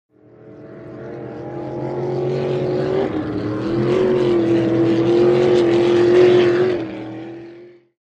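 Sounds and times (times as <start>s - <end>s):
offshore power boat passing by fast: 0.2s - 7.9s.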